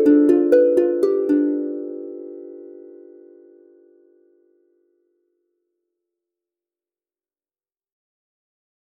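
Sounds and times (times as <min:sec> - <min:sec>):
lute melody: 0:00.0 - 0:04.2.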